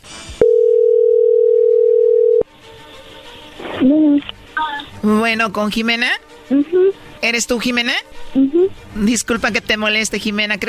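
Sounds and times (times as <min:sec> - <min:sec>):
faint phone line noise: 0:00.4 - 0:02.4
telephone ringing tone: 0:00.4 - 0:02.4
speech: 0:05.0 - 0:10.6.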